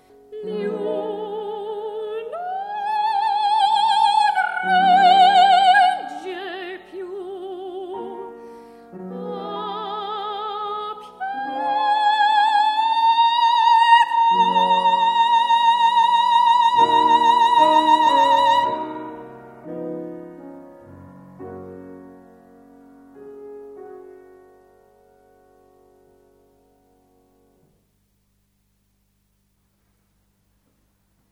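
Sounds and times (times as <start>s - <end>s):
opera singer singing: 0.3s - 8.4s, 9.0s - 19.4s.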